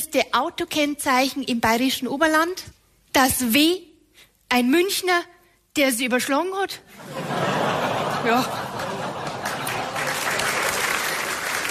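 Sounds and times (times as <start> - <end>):
speech: 0.0 - 3.9, 4.5 - 8.7
laughter: 7.0 - 10.8
audience applause: 7.8 - 11.7.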